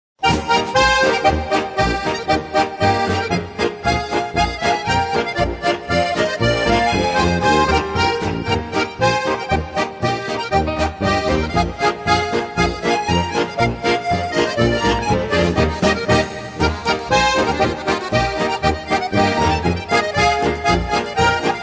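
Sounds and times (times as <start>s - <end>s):
polka music: 0.2s - 21.6s.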